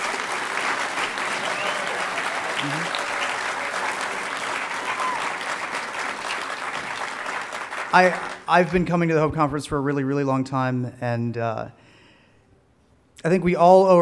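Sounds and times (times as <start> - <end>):
crowd applauding: 0.0 - 9.0
faint voices and cheers: 1.0 - 5.8
speech: 2.6 - 3.0, 7.9 - 11.8, 13.2 - 13.9.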